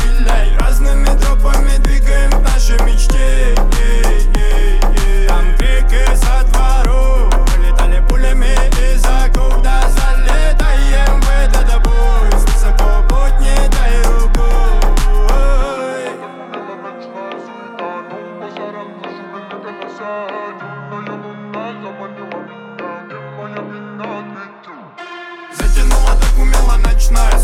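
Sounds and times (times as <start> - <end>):
31 to 35 Hz low bass tone: 0.0 - 15.7, 25.6 - 27.4.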